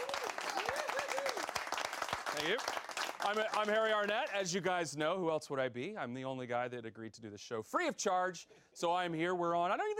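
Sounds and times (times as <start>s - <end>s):
wavering whooping cheer: 0.0s - 1.7s
audience applause: 0.0s - 4.4s
speech: 2.4s - 9.9s.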